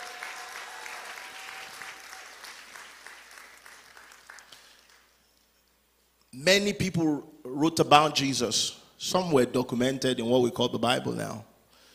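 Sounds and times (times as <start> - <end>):
audience clapping: 0.0 - 5.2
speech: 6.4 - 11.5.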